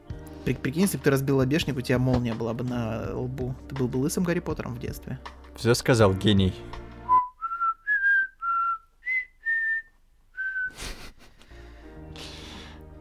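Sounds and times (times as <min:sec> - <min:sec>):
speech: 0:00.4 - 0:06.8
flute melody: 0:07.0 - 0:09.8.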